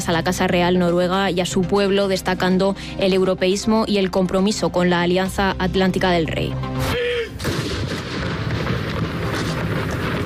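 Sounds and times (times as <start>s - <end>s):
speech: 0.0s - 7.5s
ceremonial cannon salute in Oslo after King Harald's death: 7.4s - 10.2s.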